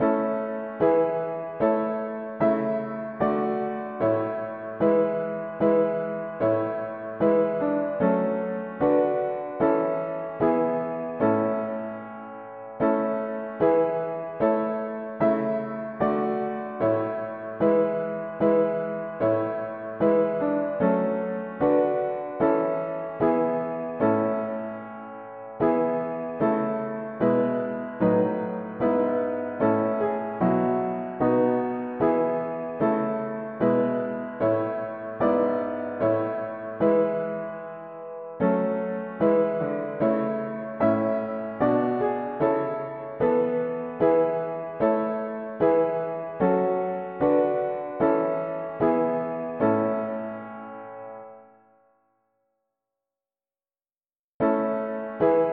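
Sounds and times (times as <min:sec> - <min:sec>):
mono piano: 0:00.0 - 0:52.4, 0:54.4 - 0:55.5.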